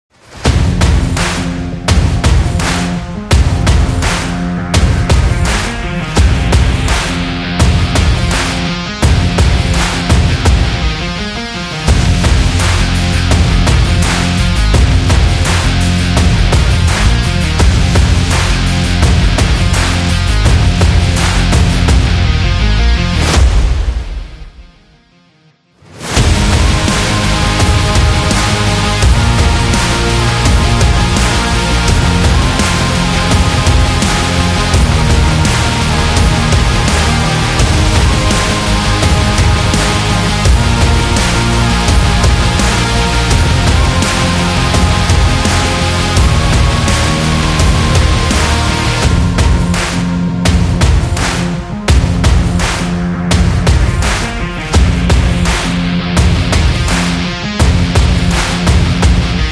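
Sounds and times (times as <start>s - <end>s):
sport rock music: 0.2s - 59.5s.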